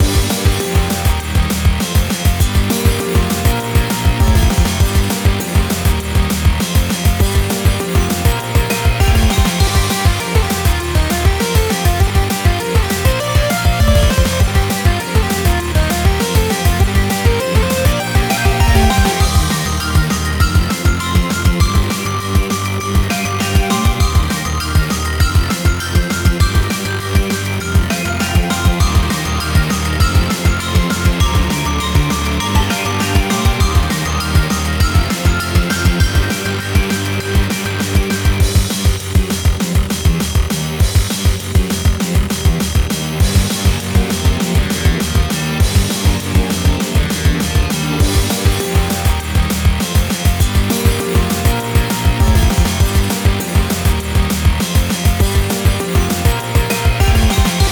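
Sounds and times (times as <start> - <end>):
miniboss theme game music: 0.0 - 40.0, 40.7 - 57.7.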